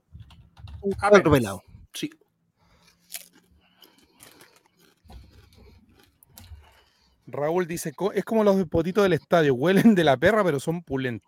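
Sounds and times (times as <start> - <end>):
speech: 0.8 - 2.2, 7.3 - 11.2
seaweed potato chips being chewed: 2.6 - 7.2.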